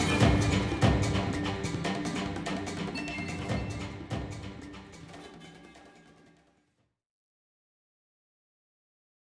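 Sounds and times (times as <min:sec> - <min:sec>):
jungle hunting music theme: 0:00.0 - 0:05.5.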